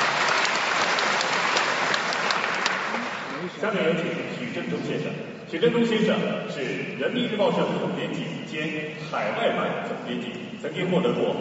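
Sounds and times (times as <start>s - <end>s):
audience applause: 0.0s - 3.6s
speech: 3.6s - 11.3s.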